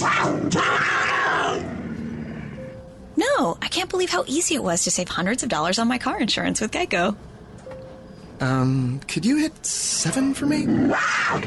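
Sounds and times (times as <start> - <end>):
puma growling in an elevator: 0.0 - 2.6, 10.6 - 11.4
speech: 3.6 - 7.3, 8.4 - 11.4.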